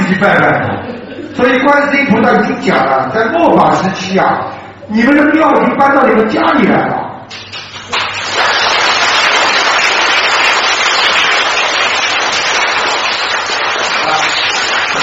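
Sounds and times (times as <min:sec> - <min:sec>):
speech: 0:00.1 - 0:07.6
audience applause: 0:07.7 - 0:15.0.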